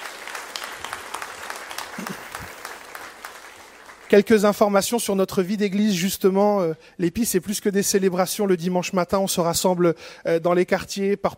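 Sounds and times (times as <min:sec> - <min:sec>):
audience applause welcoming visitors: 0:00.0 - 0:04.5
speech: 0:02.0 - 0:02.3, 0:04.1 - 0:11.3.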